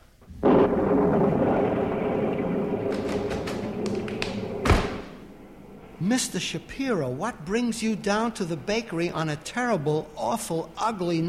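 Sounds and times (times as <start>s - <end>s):
crackling snaps: 0.0s - 6.9s
heavy crash: 0.3s - 6.7s
storm sound effect rumbling burst: 0.3s - 9.2s
rain roaring: 0.3s - 10.2s
speech: 6.1s - 11.2s.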